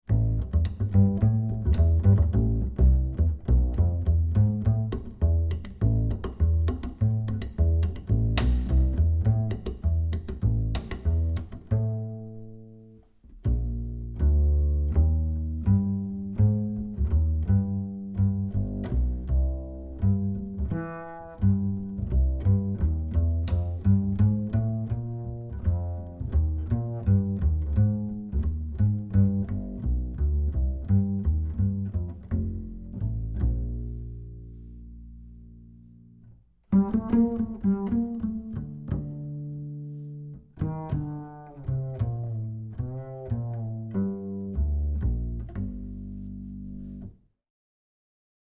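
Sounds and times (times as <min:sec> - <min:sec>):
plucked acoustic bass through 25cm speaker: 0:00.0 - 0:47.2.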